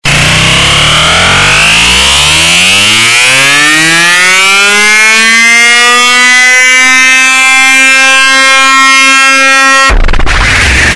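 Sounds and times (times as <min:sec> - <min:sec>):
irritating sound: 0:00.0 - 0:05.6, 0:06.9 - 0:10.9.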